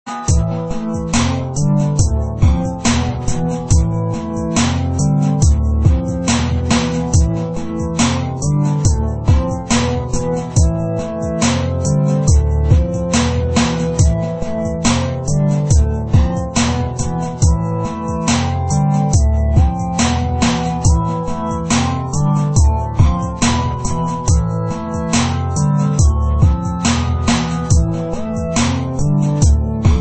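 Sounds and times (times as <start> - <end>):
Korg DS-10 synthesizer music: 0.1 - 29.9.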